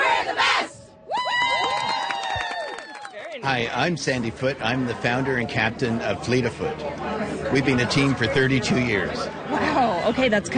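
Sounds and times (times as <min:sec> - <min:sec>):
team cheering and shouting together: 0:00.0 - 0:03.4
speech: 0:03.4 - 0:10.5.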